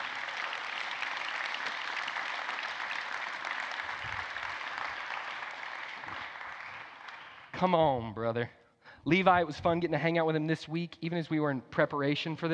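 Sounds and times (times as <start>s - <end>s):
crowd clapping: 0.0s - 7.8s
speech: 7.6s - 12.5s.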